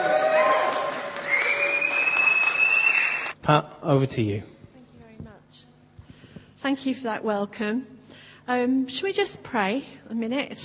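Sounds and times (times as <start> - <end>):
crowd applauding: 0.0 - 3.4
speech: 3.5 - 4.6, 6.6 - 10.6.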